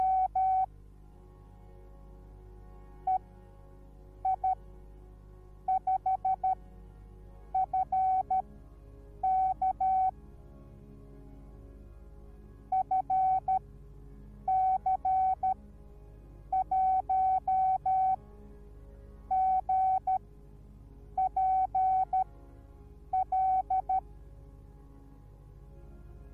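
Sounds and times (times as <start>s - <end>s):
morse code beeps: 0.0s - 0.7s, 4.3s - 4.6s, 5.7s - 6.6s, 7.6s - 8.4s, 9.3s - 10.1s, 12.8s - 13.6s, 14.5s - 15.6s, 16.6s - 18.2s, 19.3s - 20.2s, 21.2s - 22.2s, 23.2s - 24.0s.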